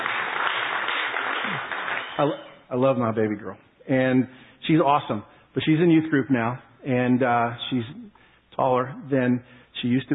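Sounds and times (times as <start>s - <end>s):
audience applause: 0.0s - 2.4s
speech: 2.2s - 8.0s, 8.6s - 10.1s.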